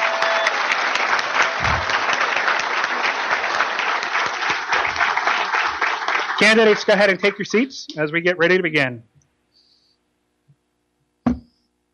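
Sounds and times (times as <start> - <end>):
audience applause: 0.0 - 7.7
speech: 6.4 - 9.1.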